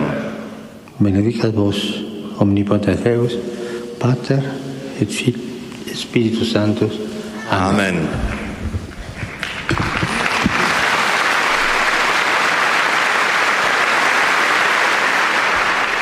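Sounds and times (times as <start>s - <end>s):
speech: 1.0s - 8.3s
large hall audience applause: 9.3s - 16.0s.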